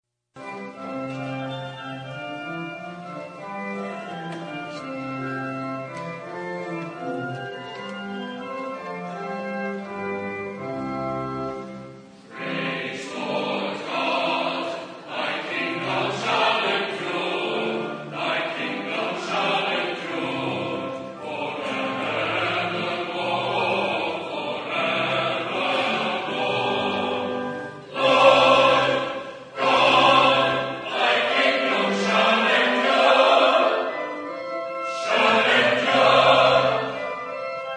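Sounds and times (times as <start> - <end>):
choral response: 11.5 - 37.7.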